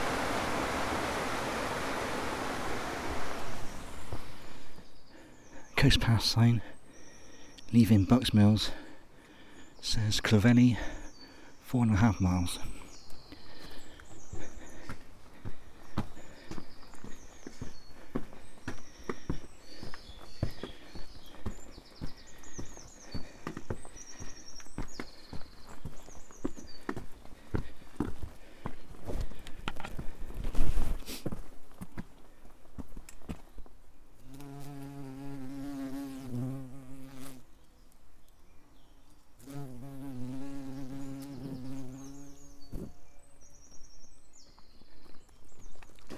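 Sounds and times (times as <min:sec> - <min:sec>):
insect buzzing: 0:00.0 - 0:04.8, 0:34.2 - 0:37.5, 0:39.4 - 0:43.0
footsteps through woods on the coast path between Bucks Mills and Clovelly: 0:00.0 - 0:05.0, 0:12.6 - 0:33.8, 0:44.5 - 0:46.1
speech: 0:05.8 - 0:06.8, 0:07.7 - 0:08.8, 0:09.8 - 0:11.0, 0:11.7 - 0:12.8.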